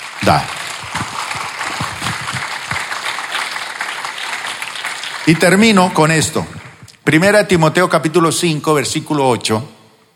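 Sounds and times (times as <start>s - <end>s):
audience applauding: 0.0s - 6.9s
speech: 0.2s - 0.6s, 5.3s - 9.8s.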